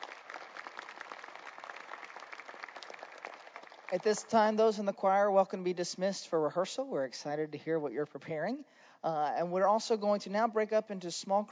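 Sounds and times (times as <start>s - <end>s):
audience applause for a guest speaker: 0.0s - 4.6s
speech: 3.9s - 11.5s.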